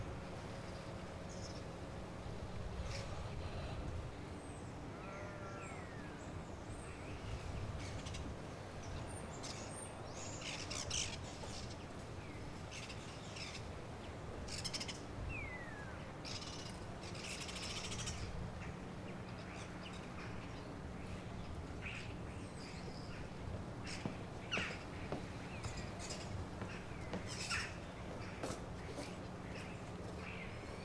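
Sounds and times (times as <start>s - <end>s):
early morning soundscape at Mont Saint Michel: 0.0s - 30.8s.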